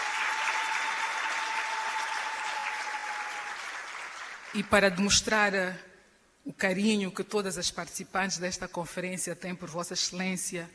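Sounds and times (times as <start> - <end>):
applause for a guest of honour: 0.0 - 5.0
speech: 4.6 - 10.7.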